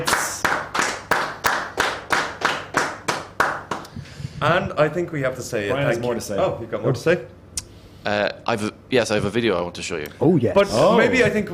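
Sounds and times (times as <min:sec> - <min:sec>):
people clapping: 0:00.0 - 0:04.0
speech: 0:04.4 - 0:07.4, 0:08.0 - 0:11.5.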